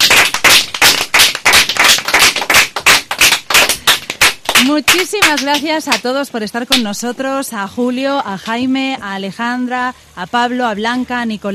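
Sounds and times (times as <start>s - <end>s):
crowd applause: 0.0s - 4.7s
speech: 4.8s - 11.5s.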